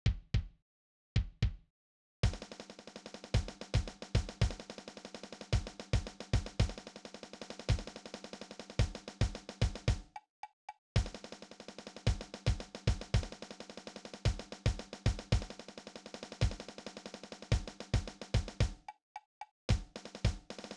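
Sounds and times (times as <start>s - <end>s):
drum march: 2.2s - 10.0s, 11.0s - 18.7s, 19.7s - 20.7s.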